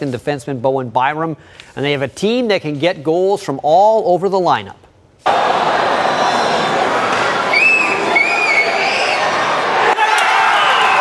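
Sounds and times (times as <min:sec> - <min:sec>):
speech: 0:00.0 - 0:05.4
hockey crowd cheering: 0:05.2 - 0:10.9.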